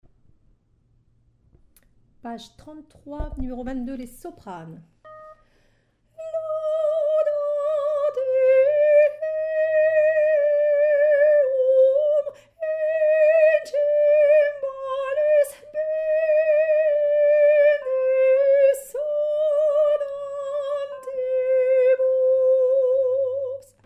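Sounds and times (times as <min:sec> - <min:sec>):
soprano singing a psalm: 0:06.2 - 0:23.8.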